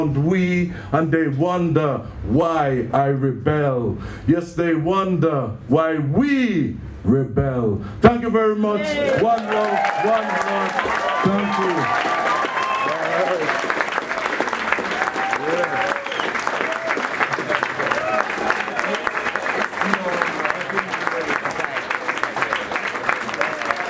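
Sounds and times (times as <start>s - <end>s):
speech: 0.0s - 12.2s
cheers and whoops: 9.1s - 19.3s
crowd applauding: 9.1s - 23.8s.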